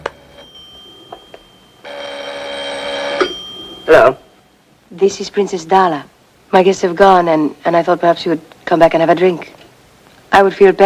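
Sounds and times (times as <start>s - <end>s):
telephone ringing: 0.0s - 4.6s
speech: 3.9s - 4.2s, 4.9s - 9.5s, 10.3s - 10.8s.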